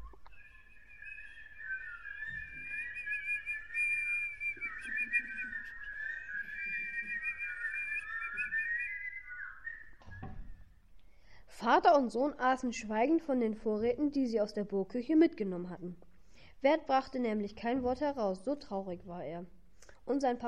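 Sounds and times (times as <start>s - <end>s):
birds singing at sunset: 0.0s - 10.8s
speech: 11.6s - 20.4s.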